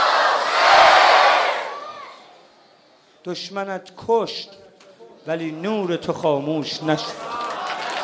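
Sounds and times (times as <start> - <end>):
crowd loudly chanting in unison: 0.0 - 2.2
speech: 3.2 - 4.6, 5.2 - 7.3.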